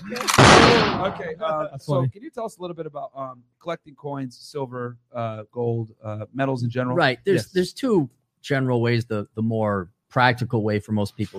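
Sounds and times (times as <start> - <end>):
speech: 0.1 - 11.3
gunshot sound effect: 0.2 - 1.4.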